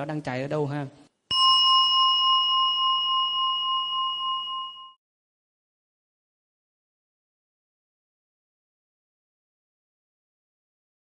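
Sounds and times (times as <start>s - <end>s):
speech: 0.0s - 1.0s
meditation bell being struck: 1.3s - 5.0s.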